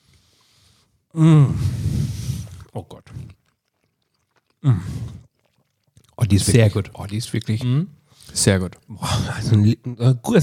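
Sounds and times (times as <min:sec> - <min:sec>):
speech: 0:01.2 - 0:01.7, 0:06.3 - 0:10.4
chewing on bread with apple-chive liver sausage: 0:02.4 - 0:07.7.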